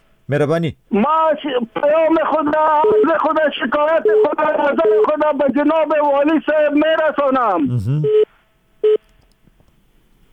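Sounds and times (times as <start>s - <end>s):
speech: 0.3s - 8.3s
telephone line tone on a radio call-in show after the line drops: 2.8s - 5.2s.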